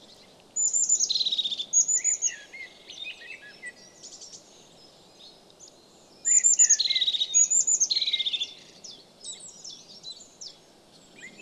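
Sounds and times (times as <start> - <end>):
crested tit song: 0.0 - 11.3.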